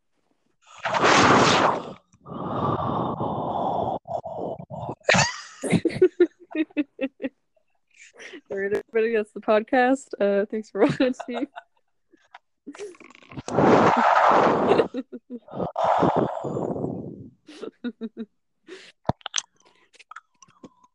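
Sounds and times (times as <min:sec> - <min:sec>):
breathy snort-like bursts: 0:00.8 - 0:05.2, 0:12.7 - 0:17.8
laughter: 0:05.1 - 0:07.3, 0:10.8 - 0:11.9, 0:14.7 - 0:15.6
speech: 0:09.0 - 0:11.7, 0:14.5 - 0:19.0.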